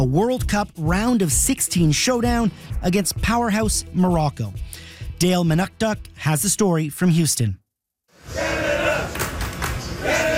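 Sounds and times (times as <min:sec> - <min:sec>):
speech: 0:00.0 - 0:07.6
Canada soccer fans chanting in the streets of downtown Houston: 0:08.2 - 0:10.3.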